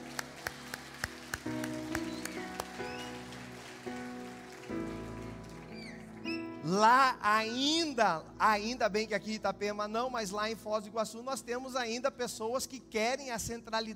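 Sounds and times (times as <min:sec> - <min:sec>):
audience applauding: 0:00.0 - 0:07.0
speech: 0:06.7 - 0:13.9.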